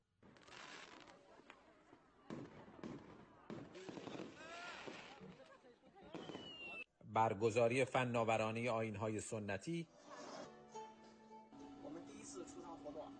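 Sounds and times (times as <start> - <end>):
fireworks exploding: 0.2 - 6.9
speech: 7.1 - 10.2.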